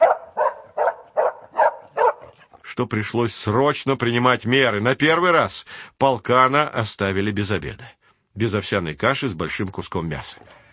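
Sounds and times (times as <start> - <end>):
customs sniffer dog barking: 0.0 - 2.4, 10.6 - 10.7
speech: 2.8 - 10.7.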